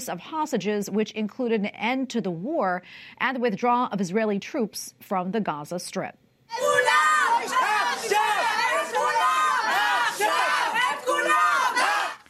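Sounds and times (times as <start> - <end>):
speech: 0.0 - 8.2
relatives of Israeli hostages yelling in parliament meeting: 6.5 - 12.2.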